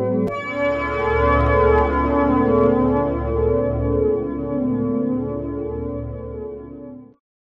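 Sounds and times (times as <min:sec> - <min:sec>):
idyllic synth pad: 0:00.2 - 0:06.6.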